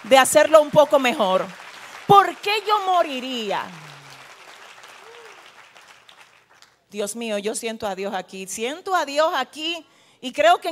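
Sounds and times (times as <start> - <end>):
speech: 0.0 - 3.9, 6.9 - 10.6
audience applause: 0.0 - 6.7.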